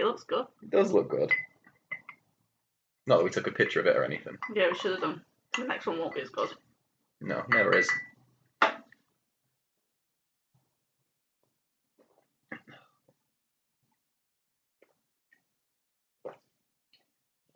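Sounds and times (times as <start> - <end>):
speech: 0.1 - 1.5, 3.1 - 6.6, 7.2 - 8.1
person gulping a drink: 12.0 - 13.2, 14.8 - 15.5, 16.2 - 17.5.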